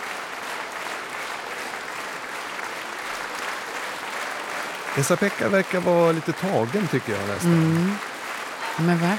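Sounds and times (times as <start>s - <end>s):
large concert audience standing ovation applause: 0.0s - 9.1s
speech: 5.0s - 8.1s, 8.8s - 9.1s.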